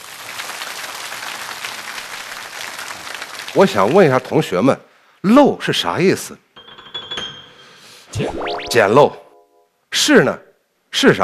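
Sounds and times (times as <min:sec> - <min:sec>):
roomful of people clapping in a classroom: 0:00.0 - 0:04.3
speech: 0:03.6 - 0:06.4, 0:08.7 - 0:09.2, 0:09.9 - 0:11.2.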